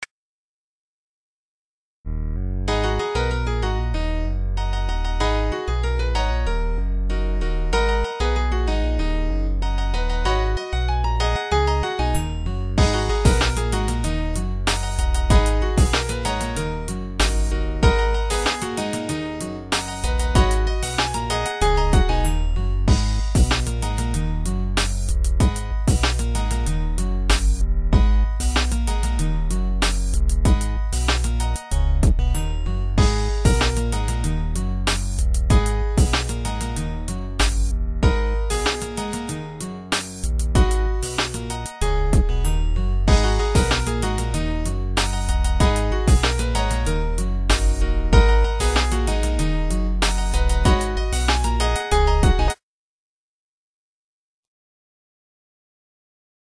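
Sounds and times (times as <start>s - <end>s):
sweet melody: 2.1s - 52.6s.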